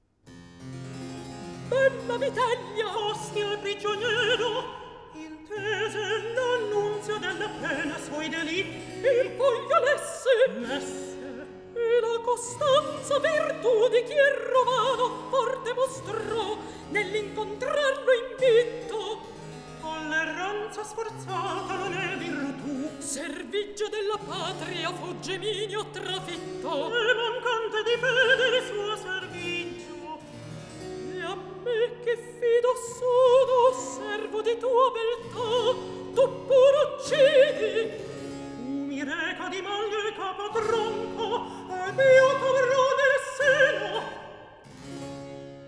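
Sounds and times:
recitative singing: 1.2s - 44.8s.

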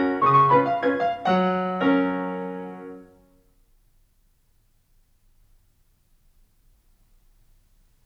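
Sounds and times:
piano waltz in G-flat major: 0.0s - 3.3s.

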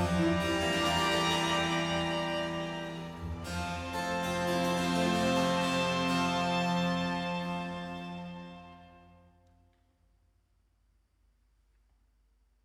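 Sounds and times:
bassoon concerto with strings and basso continuo in B flat major: 0.0s - 9.2s.

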